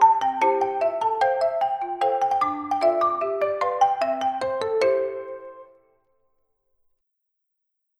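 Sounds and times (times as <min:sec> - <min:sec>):
traditional vibraphone ringtone: 0:00.0 - 0:05.8.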